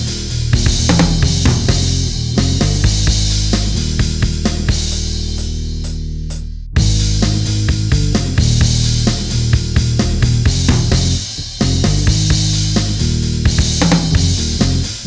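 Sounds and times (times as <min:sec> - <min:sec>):
band jamming: 0:00.0 - 0:14.9.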